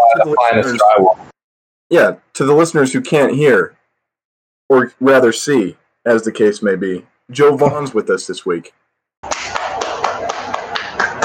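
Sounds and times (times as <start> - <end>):
speech: 0.2 - 1.3, 1.9 - 3.8, 4.7 - 9.5
applause: 9.2 - 11.2.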